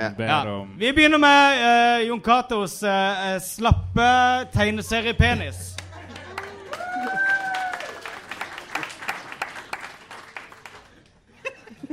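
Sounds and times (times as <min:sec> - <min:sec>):
speech: 0:00.0 - 0:05.8
audience applause vote: 0:05.8 - 0:11.2
cheering voices: 0:05.9 - 0:10.1
scattered laughter: 0:11.4 - 0:11.9.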